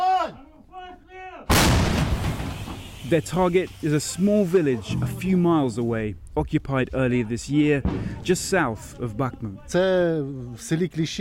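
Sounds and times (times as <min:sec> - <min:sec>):
Soviet-era artillery gun firing on Russian forces near Bakhmut: 0:01.5 - 0:03.0
speech: 0:03.1 - 0:11.1.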